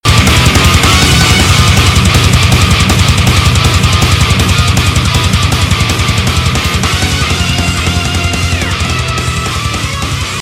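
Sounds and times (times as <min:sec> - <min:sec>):
intro music: 0:00.1 - 0:10.4.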